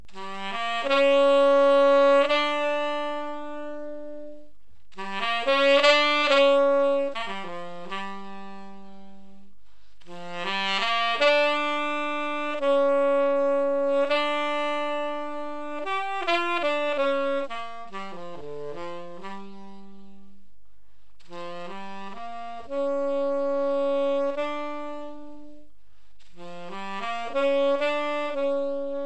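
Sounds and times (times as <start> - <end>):
saxophone intro: 0.1 - 20.4, 21.2 - 29.0.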